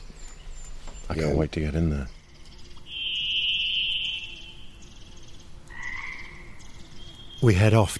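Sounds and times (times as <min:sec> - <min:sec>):
hiss: 0:00.0 - 0:07.9
speech: 0:01.1 - 0:02.2, 0:07.4 - 0:07.9
dawn birdsong trill: 0:02.0 - 0:07.8.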